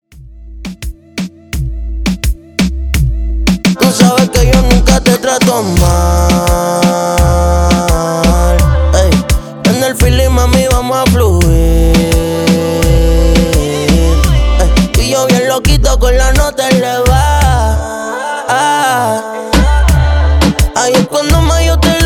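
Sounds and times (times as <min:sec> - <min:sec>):
song intro and verse: 0:00.2 - 0:22.0.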